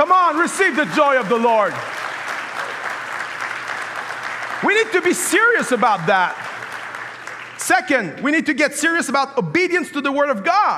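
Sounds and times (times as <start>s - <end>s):
speech: 0.0s - 2.0s, 4.6s - 6.4s, 7.6s - 10.7s
audience clapping: 0.0s - 8.4s.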